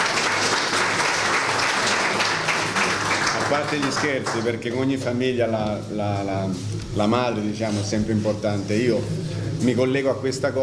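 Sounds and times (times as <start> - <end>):
audience applause: 0.0 - 4.6
speech: 3.5 - 10.6.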